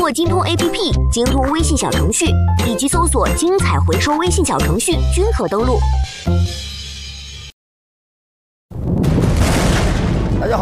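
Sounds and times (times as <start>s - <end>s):
speech: 0.1s - 6.7s
thunder: 8.7s - 10.6s.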